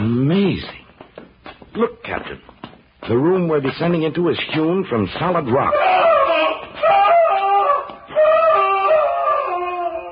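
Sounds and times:
speech: 0:00.6 - 0:00.8, 0:01.8 - 0:02.5, 0:03.1 - 0:06.5
man screaming in agony: 0:05.7 - 0:10.1.

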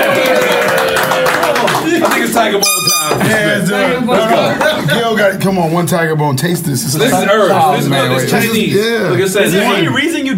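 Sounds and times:
hands clapping: 0:00.0 - 0:03.2
speech: 0:02.4 - 0:10.3.

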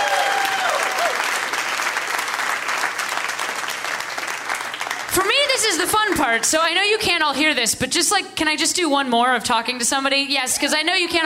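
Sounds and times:
audience applause: 0:00.0 - 0:06.4
speech: 0:05.8 - 0:11.2.

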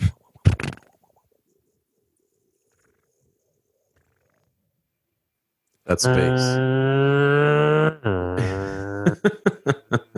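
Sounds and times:
speech: 0:05.9 - 0:06.8, 0:09.2 - 0:09.8
voice imitating a car zooming past: 0:06.0 - 0:09.2
rhythmic laughs: 0:08.4 - 0:10.1.

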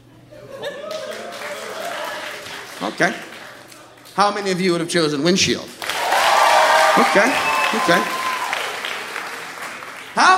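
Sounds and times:
laughter: 0:00.2 - 0:02.8
audience applause: 0:00.8 - 0:04.2, 0:05.8 - 0:10.3
speech: 0:02.8 - 0:03.3, 0:04.2 - 0:05.8, 0:07.0 - 0:08.2, 0:10.2 - 0:10.3.

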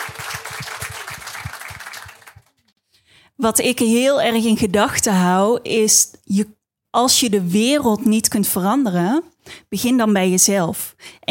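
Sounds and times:
applause: 0:00.0 - 0:02.6
speech: 0:03.4 - 0:11.2.

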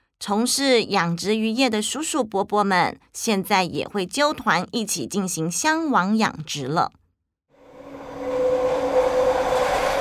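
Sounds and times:
speech: 0:00.2 - 0:07.0
high-speed train whooshing in with a humming whine: 0:07.6 - 0:10.0.

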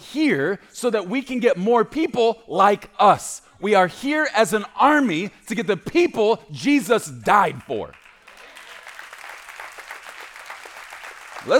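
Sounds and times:
speech: 0:00.1 - 0:08.0
crowd clapping steadily: 0:07.5 - 0:11.5.

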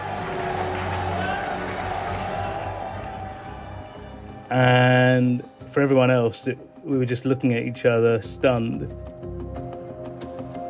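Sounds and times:
small group of Qataris cheering: 0:00.0 - 0:04.4
speech: 0:04.5 - 0:09.2.

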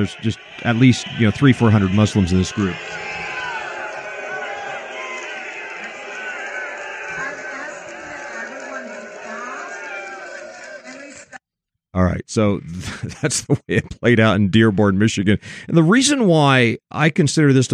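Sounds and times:
speech: 0:00.0 - 0:03.1, 0:12.0 - 0:17.7
crowd of hundreds shouting and screaming: 0:00.0 - 0:11.4
laughter: 0:00.0 - 0:11.4, 0:12.4 - 0:15.4.

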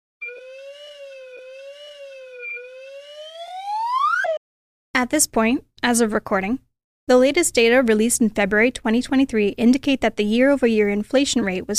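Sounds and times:
slide whistle: 0:00.2 - 0:04.4
speech: 0:05.0 - 0:11.7.

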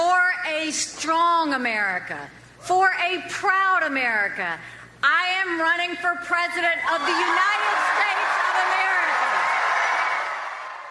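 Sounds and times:
speech: 0:00.7 - 0:08.8
crowd cheering at campaign rally in Charleston: 0:06.8 - 0:10.9.

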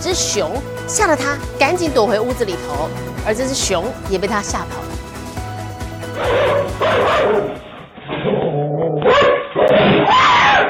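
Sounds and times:
speech: 0:00.1 - 0:05.0
dogs barking frantically: 0:06.2 - 0:07.8, 0:09.0 - 0:10.6.

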